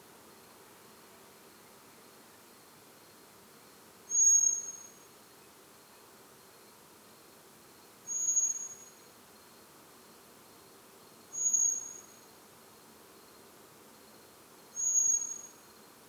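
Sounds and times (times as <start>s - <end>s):
soft steady hiss: 0.0s - 16.0s
common blackbird high whistled call: 4.1s - 4.9s, 8.1s - 8.8s, 11.4s - 12.0s, 14.8s - 15.6s.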